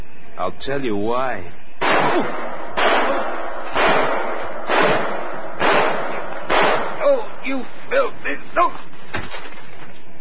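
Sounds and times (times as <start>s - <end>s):
speech: 0.4s - 3.0s, 7.5s - 9.4s
gunshots: 1.8s - 7.8s.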